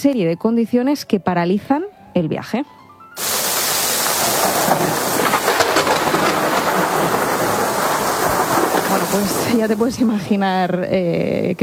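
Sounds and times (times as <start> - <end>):
speech: 0.0 - 3.3, 9.1 - 11.6
heavy rain in a storm at sea: 3.2 - 10.5
gusting wind in a storm at sea: 3.2 - 11.6
low rumbling like thunder: 3.2 - 11.6.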